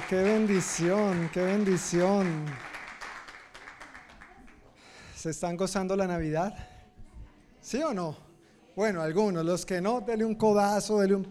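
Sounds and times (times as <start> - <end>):
crowd applauding: 0.0 - 4.9
speech: 0.1 - 2.7, 5.2 - 6.7, 7.6 - 8.2, 8.8 - 11.2.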